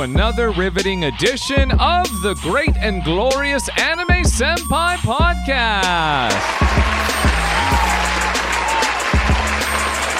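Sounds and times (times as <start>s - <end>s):
speech: 0.0s - 7.1s
applause: 6.3s - 10.1s.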